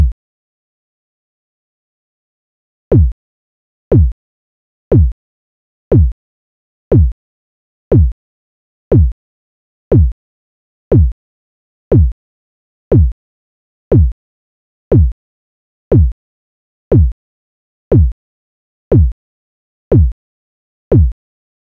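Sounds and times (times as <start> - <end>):
kick drum: 2.9 - 3.2, 3.9 - 4.2, 4.9 - 5.2, 5.9 - 6.2, 6.9 - 7.2, 7.9 - 8.2, 8.9 - 9.2, 9.9 - 10.2, 10.9 - 11.2, 11.9 - 12.2, 12.9 - 13.2, 13.9 - 14.2, 14.9 - 15.2, 15.9 - 16.2, 16.9 - 17.2, 17.9 - 18.2, 18.9 - 19.2, 19.9 - 20.2, 20.9 - 21.2.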